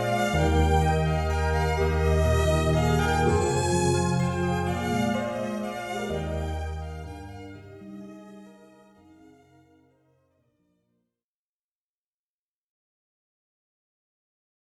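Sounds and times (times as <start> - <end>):
keys playing Jewish wedding ceremony music: 0.0 - 9.5.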